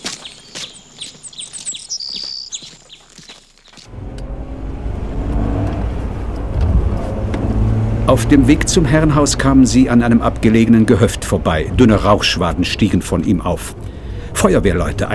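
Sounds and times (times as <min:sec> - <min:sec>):
birds chirping: 0:00.0 - 0:15.1
Land Rover car engine starting and driving off: 0:03.8 - 0:15.1
speech: 0:08.1 - 0:13.8, 0:14.4 - 0:15.1.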